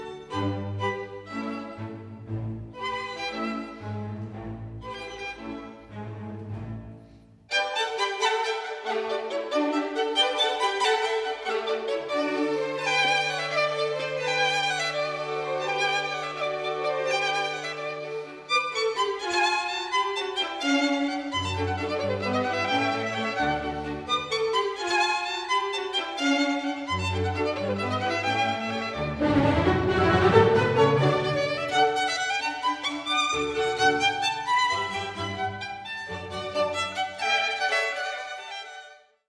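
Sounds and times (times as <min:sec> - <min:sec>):
violin concerto: 0:00.0 - 0:39.2.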